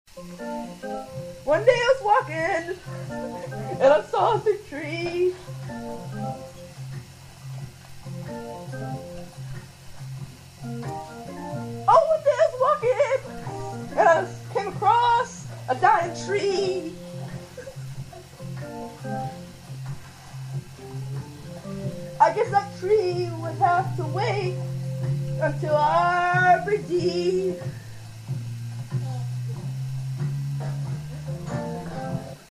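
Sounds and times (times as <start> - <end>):
blues music: 0.1 - 32.5.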